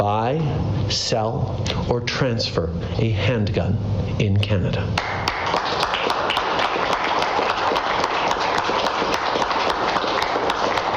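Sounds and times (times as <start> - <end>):
speech: 0.0 - 5.2
audience clapping: 5.0 - 10.9.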